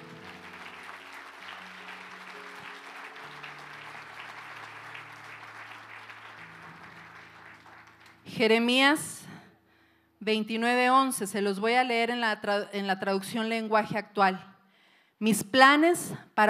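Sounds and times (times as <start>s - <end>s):
audience applauding: 0.0s - 8.3s
speech: 8.4s - 9.1s, 10.3s - 14.5s, 15.2s - 16.4s.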